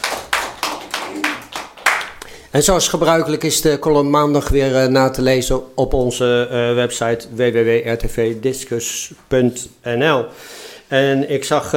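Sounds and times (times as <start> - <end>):
applause: 0.0 - 2.4
speech: 2.5 - 11.7.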